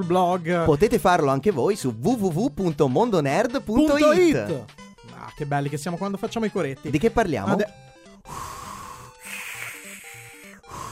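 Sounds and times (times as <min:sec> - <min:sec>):
speech: 0:00.0 - 0:07.8
voice imitating heavy wheezing breathing: 0:08.1 - 0:10.8.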